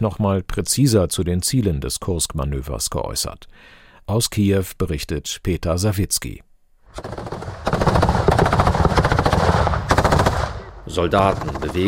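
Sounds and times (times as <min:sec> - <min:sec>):
speech: 0:00.0 - 0:07.3, 0:10.9 - 0:11.8
machine gun fire: 0:06.9 - 0:11.8.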